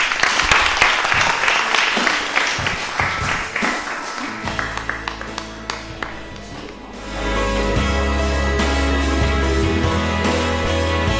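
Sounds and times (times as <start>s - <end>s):
audience applause: 0.0s - 11.1s.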